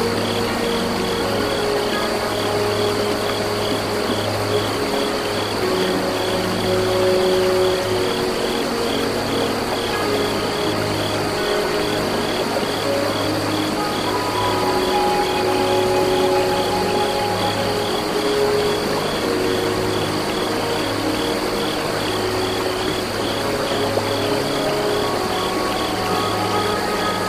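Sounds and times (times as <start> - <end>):
crickets chirping: 0.0 - 27.2
flute notes: 0.0 - 27.2
low drone: 0.0 - 27.2
running water: 0.0 - 27.2.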